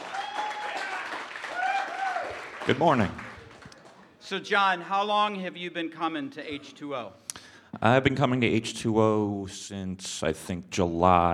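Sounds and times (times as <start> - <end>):
cheering voices: 0.0 - 3.7
audience applause: 0.0 - 4.1
speech: 2.7 - 3.2, 4.3 - 11.3.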